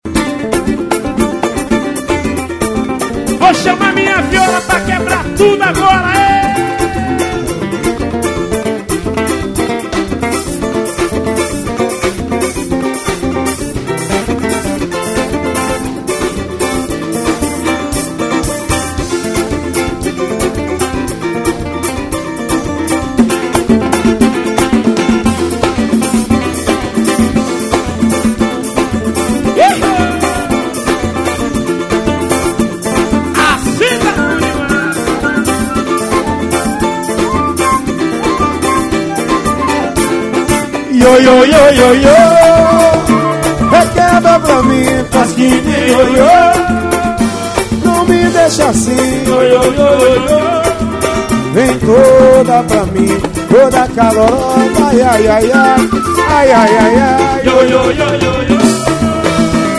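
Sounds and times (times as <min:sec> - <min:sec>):
samba group playing: 0:00.0 - 0:59.7.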